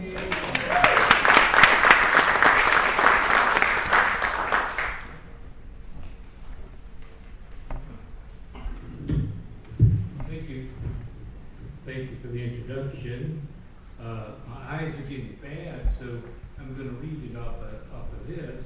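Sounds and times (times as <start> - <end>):
audience applause welcoming a poet at a poetry reading: 0.0 - 5.2.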